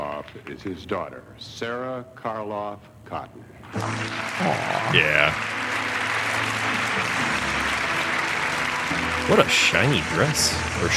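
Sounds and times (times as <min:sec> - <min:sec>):
speech: 0:00.4 - 0:05.6, 0:09.3 - 0:10.9
audience applause at the 1990 Horror Hall of Fame award ceremony: 0:03.7 - 0:10.9.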